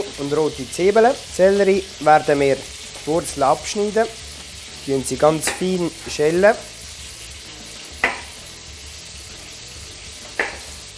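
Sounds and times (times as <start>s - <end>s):
chicken sizzling in a pan: 0.0s - 10.9s
speech: 0.2s - 4.2s, 4.8s - 6.7s.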